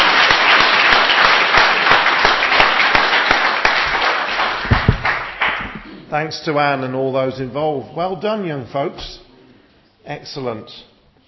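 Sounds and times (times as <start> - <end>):
audience applause: 0.0 - 5.9
speech: 6.2 - 9.2, 10.0 - 10.9.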